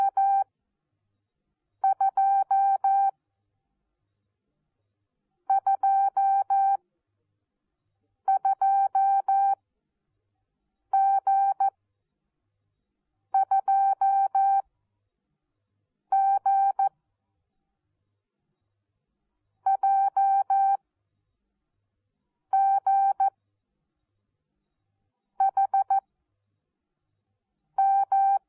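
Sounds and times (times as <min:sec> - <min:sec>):
morse code beeps: 0:00.0 - 0:00.4, 0:01.8 - 0:03.1, 0:05.5 - 0:06.8, 0:08.3 - 0:09.6, 0:11.0 - 0:11.7, 0:13.4 - 0:14.6, 0:16.1 - 0:16.9, 0:19.7 - 0:20.8, 0:22.6 - 0:23.3, 0:25.4 - 0:26.0, 0:27.8 - 0:28.4.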